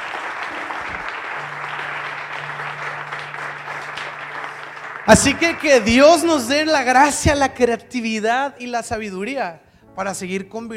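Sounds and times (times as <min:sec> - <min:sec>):
applause: 0:00.0 - 0:07.2
speech: 0:05.1 - 0:10.7.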